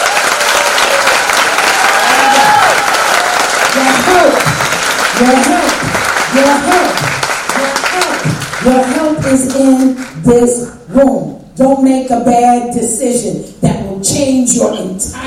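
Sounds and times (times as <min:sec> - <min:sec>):
cheers: 0:00.0 - 0:06.2
audience clapping: 0:00.0 - 0:10.2
speech: 0:05.2 - 0:05.6, 0:06.4 - 0:07.2, 0:08.0 - 0:15.2.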